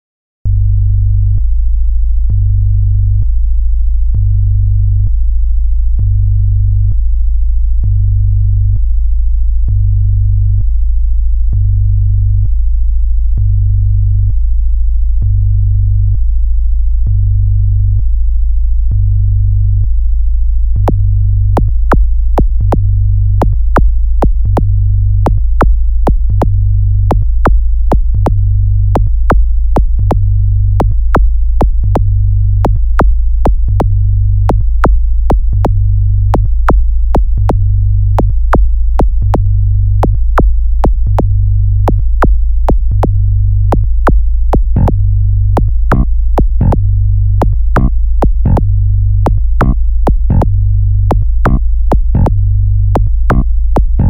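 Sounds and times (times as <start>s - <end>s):
deep bass: 0.0s - 54.0s.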